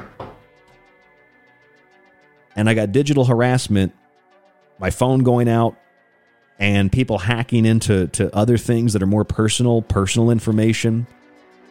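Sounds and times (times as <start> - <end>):
knocking on wood: 0.0 - 0.5
speech: 2.6 - 4.0, 4.8 - 5.8, 6.6 - 11.2.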